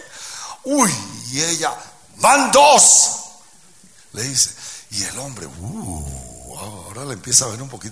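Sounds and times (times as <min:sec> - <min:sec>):
speech: 0:00.8 - 0:03.2, 0:04.2 - 0:07.9
human voice imitating a horse neighing: 0:05.5 - 0:06.8.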